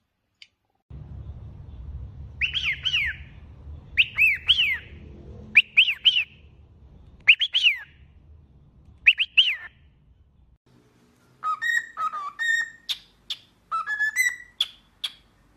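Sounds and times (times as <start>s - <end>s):
low rumbling background noise: 0.9s - 9.1s
cockatiel arched chirps: 2.4s - 3.3s, 4.0s - 4.9s, 9.0s - 9.7s, 11.4s - 15.5s.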